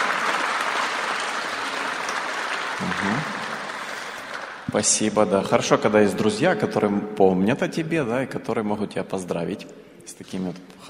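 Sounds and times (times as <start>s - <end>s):
audience applauding: 0.0s - 5.0s
speech: 2.8s - 3.4s, 4.7s - 10.8s.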